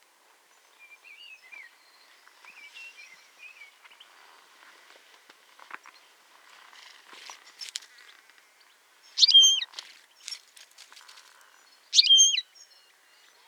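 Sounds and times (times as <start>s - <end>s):
European goldfinch Carduelis carduelis buzzy calls: 9.2s - 9.7s, 12.0s - 12.4s.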